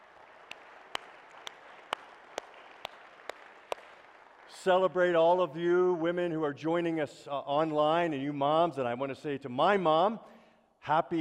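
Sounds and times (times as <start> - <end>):
audience applause: 0.0 - 5.0
speech: 4.5 - 11.1.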